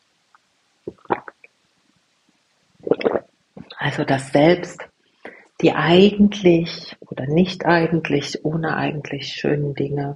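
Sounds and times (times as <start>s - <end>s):
sipping a drink of water: 0.9s - 1.5s, 2.8s - 3.8s
speech: 3.9s - 4.8s, 5.6s - 10.1s.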